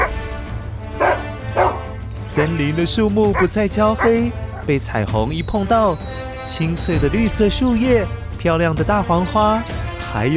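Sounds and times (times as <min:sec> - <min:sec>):
small dogs yapping: 0:01.0 - 0:02.5
speech: 0:02.4 - 0:10.3.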